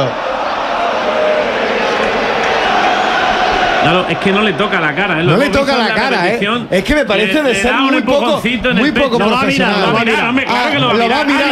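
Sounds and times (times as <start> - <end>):
football stadium crowd roaring in protest at the referee: 0.0 - 11.5
speech: 3.8 - 11.5.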